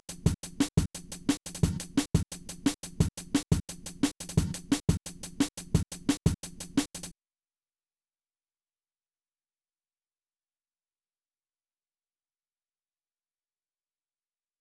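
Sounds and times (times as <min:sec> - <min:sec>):
old-school breakbeat drums: 0:00.0 - 0:07.1.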